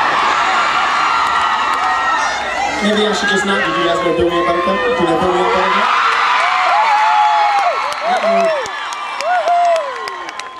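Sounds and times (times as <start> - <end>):
crowd cheering as a group at a live event with a band: 0.0 - 10.5
speech: 2.8 - 6.0
scattered whoops: 6.4 - 10.5.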